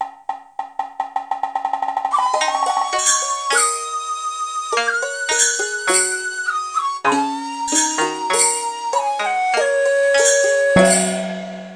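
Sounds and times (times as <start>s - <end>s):
Chinese music: 1.6s - 11.7s.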